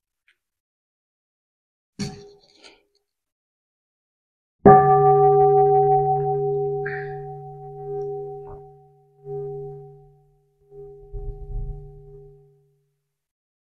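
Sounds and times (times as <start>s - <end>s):
church bell ringing: 4.7s - 10.2s.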